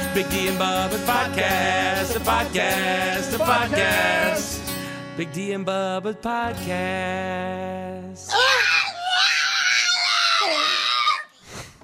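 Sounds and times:
speech: 0.2 - 4.6, 5.2 - 8.6
pug dog screaming: 8.3 - 11.3.

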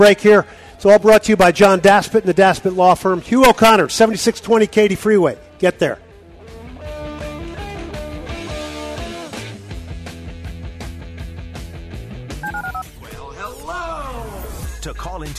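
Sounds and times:
speech: 0.0 - 6.0, 15.2 - 15.3
telephone number being dialed, DTMF tones: 12.4 - 12.8.

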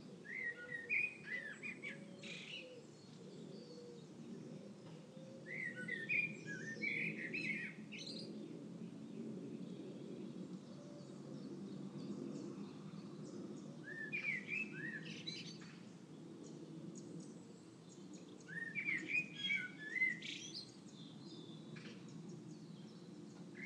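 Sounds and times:
dawn chorus of birds on Easter morning: 0.0 - 23.6.

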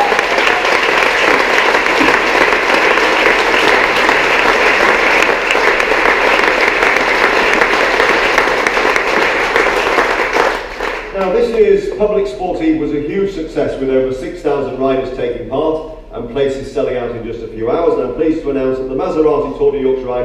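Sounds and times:
audience applause: 0.0 - 11.4
speech: 11.6 - 20.2.

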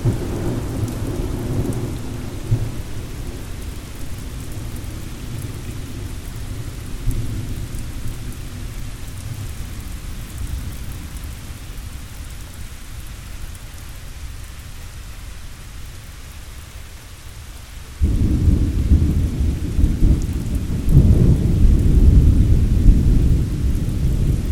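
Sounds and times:
thunderstorm: 0.0 - 11.8, 18.0 - 24.5.

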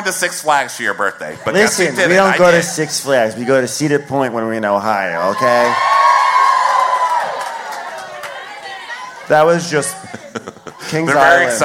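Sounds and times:
speech: 0.0 - 6.0, 9.3 - 11.6
laughter: 1.2 - 3.5, 7.9 - 11.6
studio audience cheering and whooping: 5.2 - 9.7.

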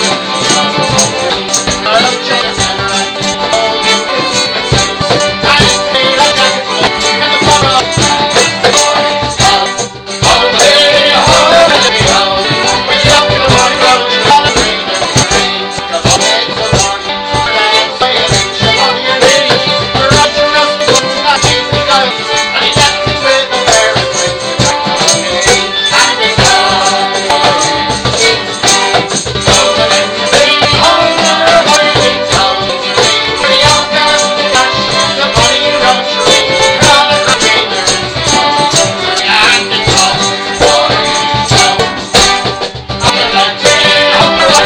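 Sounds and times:
folk music at the Lamb: 0.0 - 44.6.

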